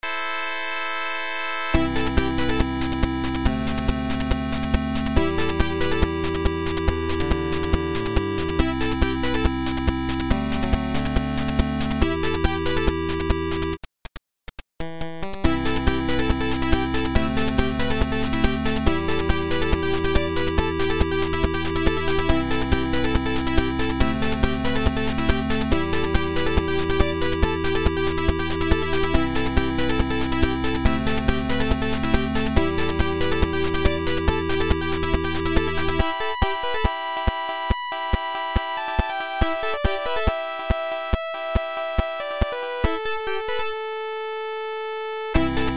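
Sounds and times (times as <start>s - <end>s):
8-bit chiptune music mix: 0.0s - 13.8s, 14.8s - 44.4s, 45.3s - 45.7s.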